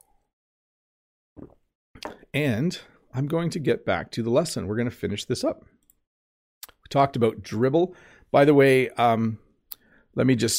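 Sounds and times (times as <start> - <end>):
person sipping water: 1.4 - 2.2
speech: 2.3 - 5.8, 6.9 - 9.4, 10.2 - 10.5.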